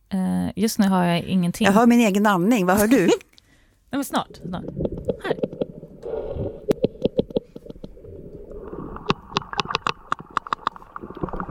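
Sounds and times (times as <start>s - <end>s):
speech: 0.6s - 3.3s, 3.9s - 5.4s
low rumbling underwater wash: 4.2s - 11.5s
sperm whale clicks underwater: 4.3s - 11.5s.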